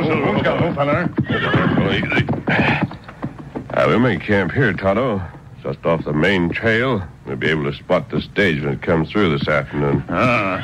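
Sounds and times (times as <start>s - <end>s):
horses neighing: 0.0s - 4.2s, 9.6s - 10.6s
hooves clopping to a halt: 0.0s - 10.6s
speech: 0.4s - 3.0s, 3.7s - 10.6s.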